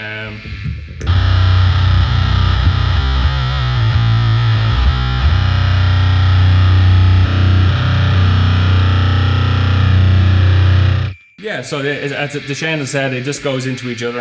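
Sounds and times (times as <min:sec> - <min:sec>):
speech: 0:00.0 - 0:01.3, 0:11.6 - 0:14.1
electric guitar through fuzz and HM2 distortion pedals: 0:00.0 - 0:11.2, 0:11.8 - 0:14.1.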